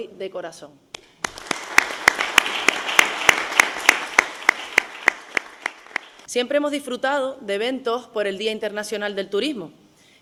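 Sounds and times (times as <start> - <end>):
speech: 0.0 - 0.9, 6.3 - 9.8
audience applause: 1.2 - 6.3.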